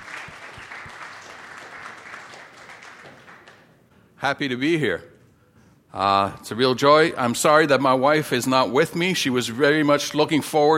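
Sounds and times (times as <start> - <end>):
church congregation in Quebec applauding a guest speaker: 0.0 - 3.9
speech: 4.2 - 5.1, 5.9 - 10.7.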